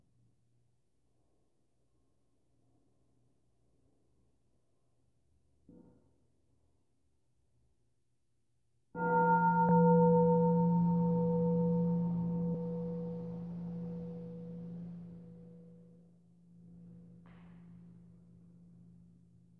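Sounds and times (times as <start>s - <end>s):
deep bell rung to end meditation: 9.0s - 17.1s.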